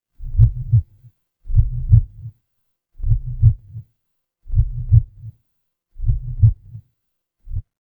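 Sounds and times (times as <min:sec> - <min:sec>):
horror heartbeat: 0:00.2 - 0:02.3, 0:03.0 - 0:03.8, 0:04.5 - 0:05.3, 0:06.0 - 0:06.8, 0:07.5 - 0:07.7.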